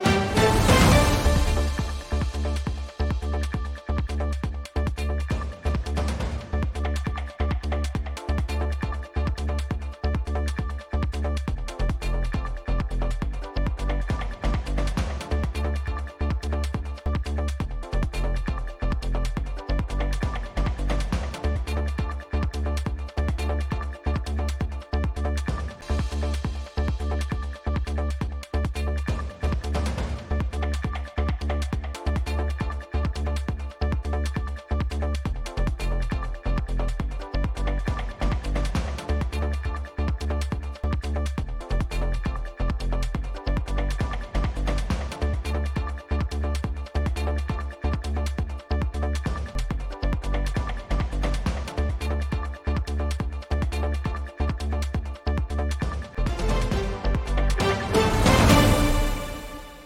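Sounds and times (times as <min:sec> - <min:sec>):
radio background music bed: 0:00.0 - 0:59.8.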